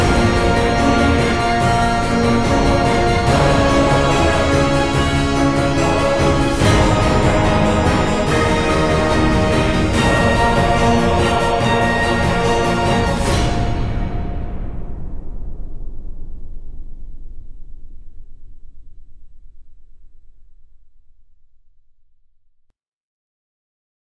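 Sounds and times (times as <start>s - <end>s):
dark church atmosphere: 0.0s - 14.9s.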